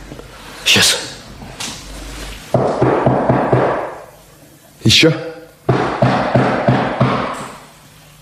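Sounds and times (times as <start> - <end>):
knocking on a door: 2.6 - 4.0, 5.7 - 7.4
speech: 4.9 - 5.3.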